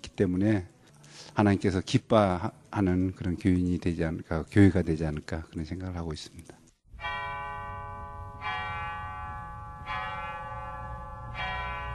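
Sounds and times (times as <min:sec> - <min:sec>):
speech: 0:00.2 - 0:00.7, 0:01.3 - 0:06.6
church bell ringing from old bell tower of Namwon Church: 0:06.9 - 0:11.9.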